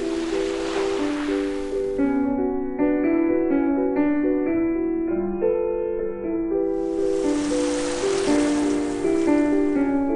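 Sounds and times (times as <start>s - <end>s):
waves washing: 0.0s - 2.0s, 6.8s - 10.1s
gentle piano melody: 0.0s - 10.1s.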